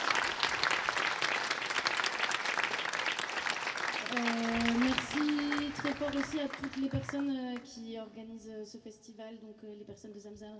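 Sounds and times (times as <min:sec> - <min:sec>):
audience applause: 0:00.0 - 0:07.4
speech: 0:06.1 - 0:10.5.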